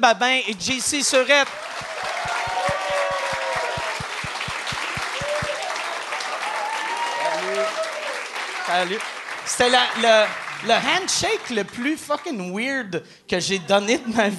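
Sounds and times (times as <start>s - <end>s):
speech: 0.0s - 2.2s, 8.7s - 14.3s
audience applause: 0.8s - 11.7s
cheers and whistles: 1.5s - 8.3s
rhythmic thumping beat: 1.6s - 5.6s.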